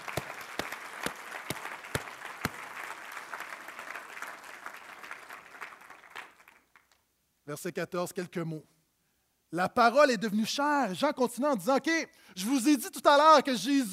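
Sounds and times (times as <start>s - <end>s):
audience applause: 0.0s - 7.0s
speech: 7.5s - 8.7s, 9.5s - 13.9s.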